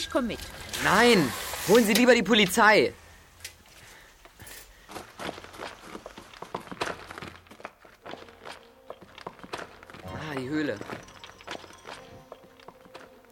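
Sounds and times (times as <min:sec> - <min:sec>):
speech: 0:00.0 - 0:03.0, 0:10.4 - 0:11.1
footsteps walking into a cave: 0:03.6 - 0:13.3.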